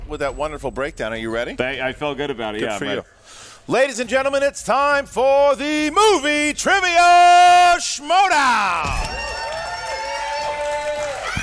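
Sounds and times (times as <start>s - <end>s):
speech: 0.1s - 9.3s
crowd cheering and hollering: 7.7s - 11.4s.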